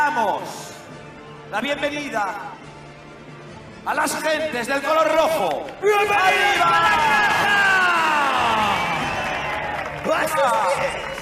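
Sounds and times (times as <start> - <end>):
speech: 0.2 - 2.7, 3.8 - 7.7, 10.1 - 11.1
crowd of supporters in red cheering: 5.1 - 11.1.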